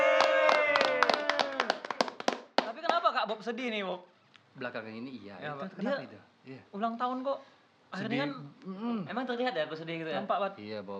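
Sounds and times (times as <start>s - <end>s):
hand clapping: 0.2s - 3.1s
speech: 3.3s - 10.9s.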